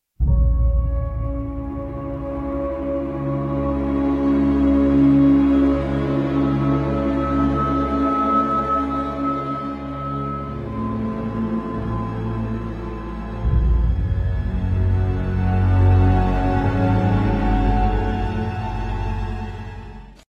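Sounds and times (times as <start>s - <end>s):
dramatic outro music: 0.2s - 20.2s.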